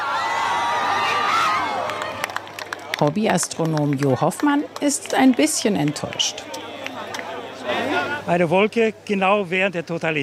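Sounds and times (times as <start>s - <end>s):
crowd cheering and applauding on a beach: 0.0s - 7.7s
speech: 3.0s - 6.7s, 7.7s - 10.2s.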